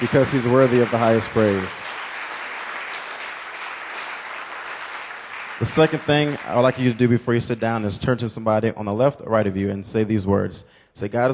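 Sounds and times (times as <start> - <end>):
speech: 0.0 - 2.0, 5.6 - 11.3
audience clapping hands: 0.0 - 7.8.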